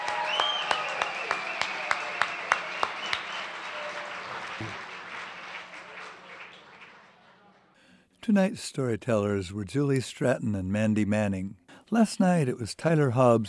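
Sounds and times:
audience applause: 0:00.0 - 0:07.8
speech: 0:04.6 - 0:04.8, 0:08.2 - 0:13.4.

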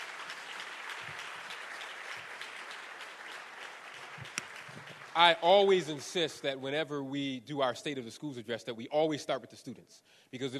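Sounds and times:
audience applause: 0:00.0 - 0:06.5
speech: 0:05.2 - 0:10.5.

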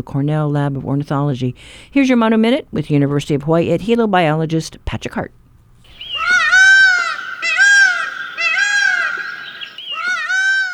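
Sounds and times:
speech: 0:00.0 - 0:05.4
Indian peafowl calling: 0:05.9 - 0:10.7.

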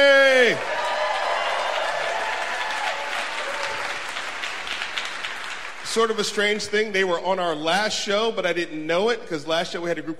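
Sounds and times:
audience applause for the band: 0:00.2 - 0:06.2
speech: 0:06.0 - 0:10.1.

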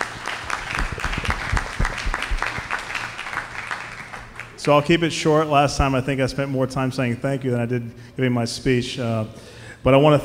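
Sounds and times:
round of applause: 0:00.0 - 0:04.6
speech: 0:04.6 - 0:10.2.

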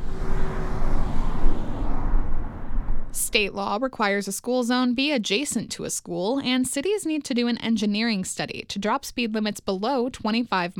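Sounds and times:
cars driving by: 0:00.0 - 0:03.4
speech: 0:03.3 - 0:10.7.

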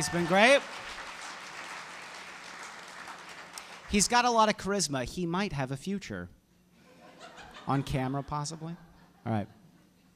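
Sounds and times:
speech: 0:00.0 - 0:00.8, 0:03.9 - 0:06.4, 0:07.7 - 0:09.6
evening audience applause for the host: 0:00.0 - 0:04.0
laughter: 0:06.8 - 0:10.1.

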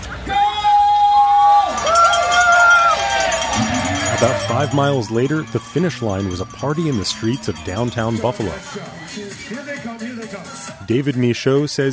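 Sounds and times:
crowd cheering at the start of a costume road race in Buffalo: 0:00.0 - 0:09.6
voices shouting: 0:00.2 - 0:09.2
long sustained tonal notes: 0:01.9 - 0:08.6
speech: 0:04.2 - 0:11.9.

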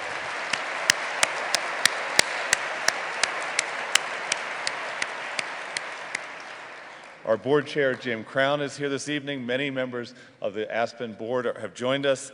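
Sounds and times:
audience applause: 0:00.0 - 0:07.2
speech: 0:07.3 - 0:12.3.

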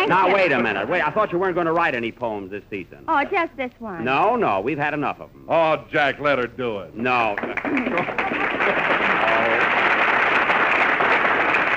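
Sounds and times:
laughter: 0:00.0 - 0:01.4, 0:07.5 - 0:09.8
speech: 0:00.0 - 0:09.1
studio audience applause: 0:07.1 - 0:11.7.

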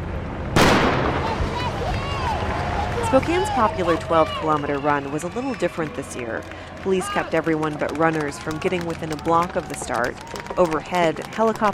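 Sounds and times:
starting gun fired at the start of Spokane's 12-kilometer run: 0:00.6 - 0:01.6
crowd murmur: 0:01.2 - 0:11.7
speech: 0:03.1 - 0:11.7.

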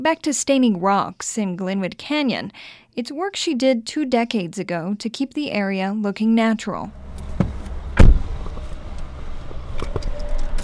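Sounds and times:
speech: 0:00.0 - 0:07.0
car driving along the road through Glenwood Canyon: 0:06.9 - 0:10.6
heavy thump: 0:07.2 - 0:08.7
light knocks: 0:07.3 - 0:08.6.

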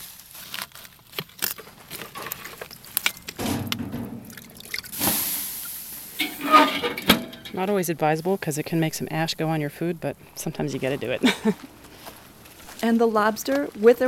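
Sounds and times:
smoldering coals crackling and popping: 0:00.0 - 0:14.0
steam hissing from water poured onto smoldering coals: 0:04.9 - 0:07.6
speech: 0:07.6 - 0:11.8, 0:12.8 - 0:14.0.

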